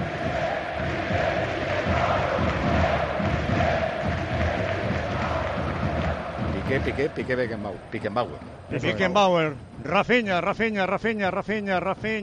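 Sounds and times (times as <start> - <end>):
large stadium crowd applauding and roaring: 0.0 - 8.8
speech: 6.7 - 12.2.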